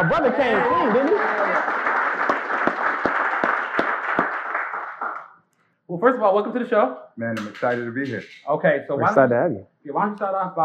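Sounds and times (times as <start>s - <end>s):
speech: 0.0s - 1.7s, 6.0s - 10.6s
audience applause: 0.0s - 5.3s.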